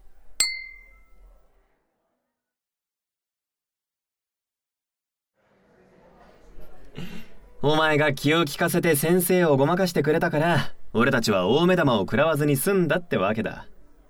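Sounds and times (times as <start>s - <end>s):
glasses clinking in a toast: 0.4s - 1.0s
speech: 7.6s - 13.7s.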